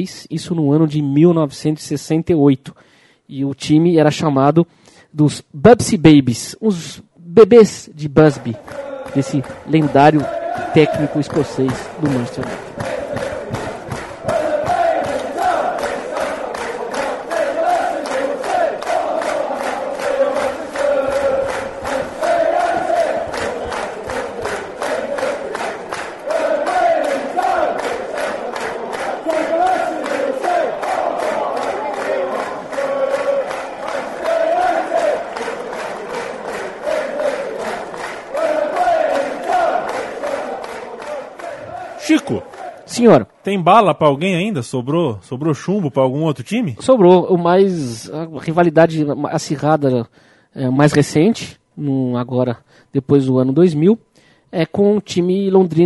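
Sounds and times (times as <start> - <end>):
speech: 0.0 - 12.9, 43.0 - 55.8
football supporters chanting in stadium: 8.3 - 43.1.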